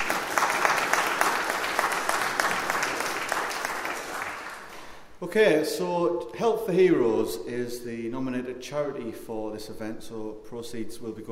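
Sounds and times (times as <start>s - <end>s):
audience applause for a choir: 0.0s - 5.0s
speech: 5.3s - 11.3s.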